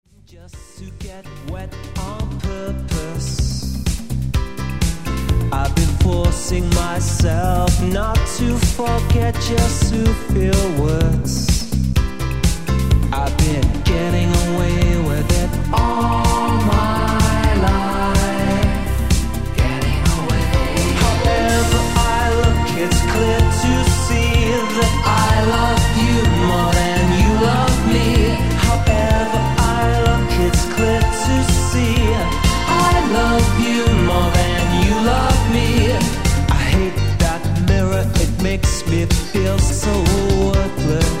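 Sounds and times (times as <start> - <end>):
electronic music: 1.2 - 41.1.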